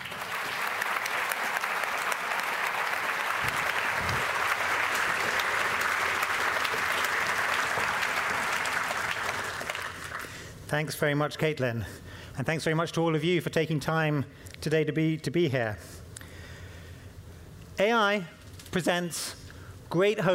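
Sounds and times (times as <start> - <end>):
audience applause welcoming a speaker at an event on AI and ethics: 0.0 - 10.4
speech: 10.7 - 16.0, 17.8 - 20.3.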